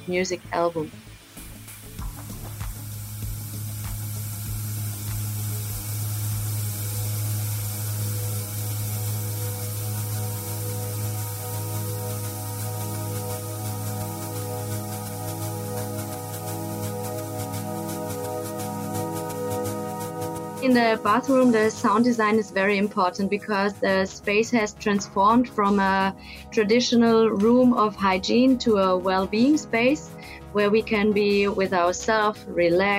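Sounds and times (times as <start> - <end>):
speech: 0.0 - 1.1, 20.7 - 32.9
flowing water: 1.9 - 20.6
low sustained hum with faint tonal notes: 2.0 - 23.9.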